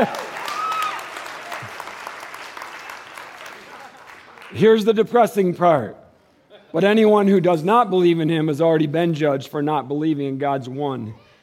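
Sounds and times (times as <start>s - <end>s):
speech: 0.0s - 0.3s, 4.5s - 6.0s, 6.7s - 11.2s
church audience clapping: 0.0s - 4.9s.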